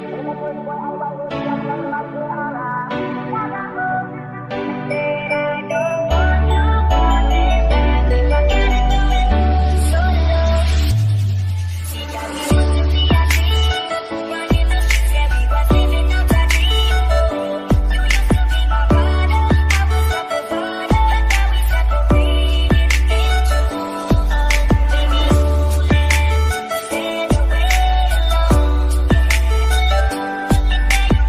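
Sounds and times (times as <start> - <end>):
solo English ringtone: 1.0 - 31.2.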